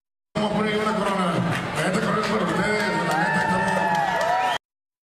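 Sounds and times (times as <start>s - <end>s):
scattered clapping: 0.4s - 4.6s
crowd roaring and cheering: 0.6s - 4.6s.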